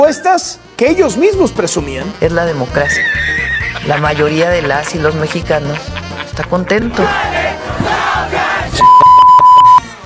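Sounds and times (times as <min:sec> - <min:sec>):
speech: 0:00.0 - 0:07.9
laughter: 0:03.0 - 0:07.8
crowd shouting: 0:07.0 - 0:08.8
high-pitched beep tone: 0:08.8 - 0:09.8.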